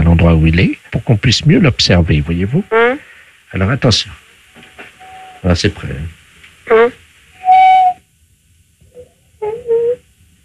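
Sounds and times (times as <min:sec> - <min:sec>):
speech: 0:00.2 - 0:04.2, 0:05.4 - 0:07.0
parrot whistling over the telephone: 0:05.0 - 0:05.4, 0:06.7 - 0:08.0, 0:08.9 - 0:10.0.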